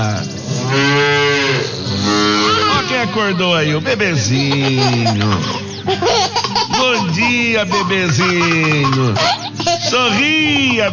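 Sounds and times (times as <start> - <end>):
dairy cow mooing at milking time: 0.0 - 3.1
laughter: 2.5 - 10.9
speech: 3.1 - 6.1, 6.9 - 10.9.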